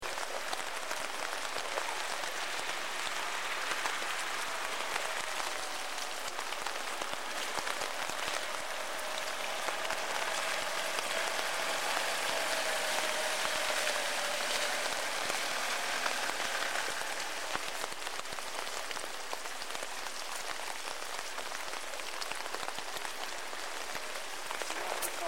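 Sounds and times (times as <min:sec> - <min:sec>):
rain: 0:00.0 - 0:25.2.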